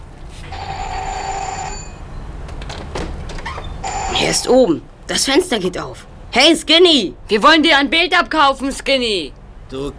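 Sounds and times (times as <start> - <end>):
doorbell ringing: 0.5 - 2.3, 3.8 - 4.5
speech: 4.3 - 9.9.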